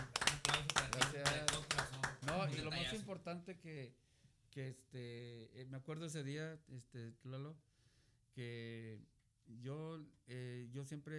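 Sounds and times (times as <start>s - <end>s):
applause: 0.0s - 2.8s
speech: 2.6s - 7.7s, 8.4s - 11.1s.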